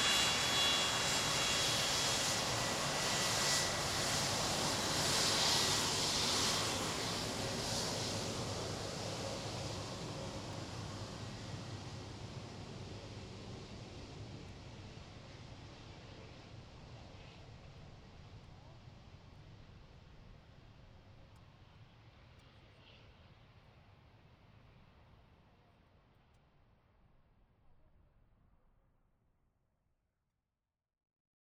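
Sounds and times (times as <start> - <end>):
Boeing 757 taxiing to the runway before take-off: 0.0 - 18.8.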